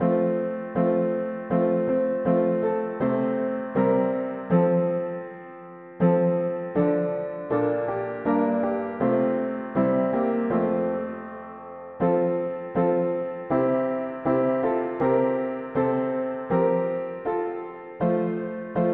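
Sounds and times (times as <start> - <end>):
mono piano: 0.0 - 18.9.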